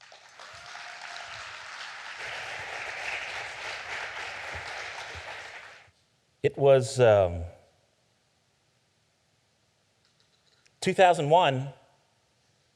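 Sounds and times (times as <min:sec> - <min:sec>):
audience applause welcoming a speaker at Salem Fields: 0:00.0 - 0:05.9
speech: 0:06.4 - 0:07.6, 0:10.8 - 0:11.8.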